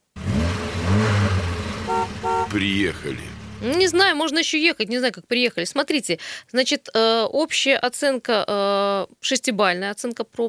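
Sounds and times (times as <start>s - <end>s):
car engine revving in a radio traffic report jingle: 0.0s - 4.1s
car horn toots: 0.8s - 4.0s
speech: 2.5s - 10.4s.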